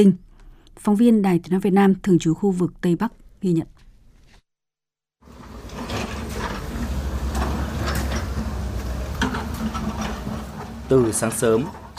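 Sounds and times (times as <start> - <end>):
speech: 0.0 - 0.2, 0.8 - 3.8, 10.9 - 11.9
excavators clearing flood debris from mud-marked roads: 5.2 - 11.9
hoes and shovels clearing flood debris: 5.2 - 11.9.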